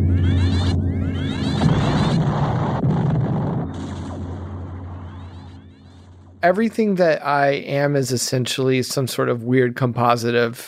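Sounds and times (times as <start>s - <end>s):
laser turret fire: 0.0s - 6.5s
steady booming rumble: 0.0s - 6.9s
speech: 6.4s - 10.6s.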